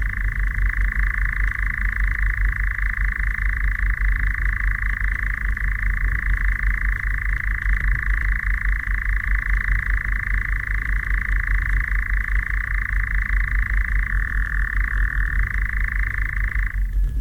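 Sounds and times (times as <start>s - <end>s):
nightjar churring night song: 0.0s - 17.0s.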